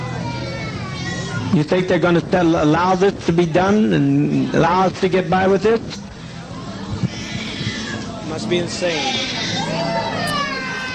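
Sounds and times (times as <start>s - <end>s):
children crying and screaming: 0.0s - 2.1s, 6.3s - 10.9s
speech: 1.5s - 6.1s, 8.4s - 9.9s.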